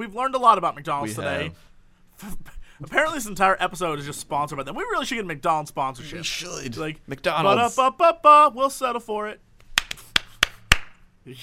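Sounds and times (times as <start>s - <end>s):
speech: 0.0s - 9.4s, 11.2s - 11.4s
hand claps: 9.6s - 11.0s.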